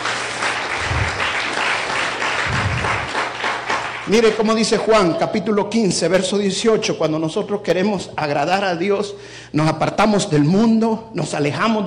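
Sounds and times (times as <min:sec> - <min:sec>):
audience applause: 0:00.0 - 0:04.7
speech: 0:04.1 - 0:11.8.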